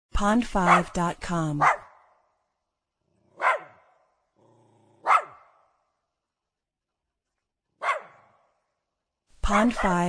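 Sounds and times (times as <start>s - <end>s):
speech: 0.2s - 1.8s, 9.5s - 10.0s
Jack Russell terrier barking: 0.6s - 0.9s, 1.6s - 2.2s, 3.3s - 4.0s, 4.9s - 5.7s, 7.8s - 8.5s
Jack Russell terrier low growl: 3.0s - 5.3s.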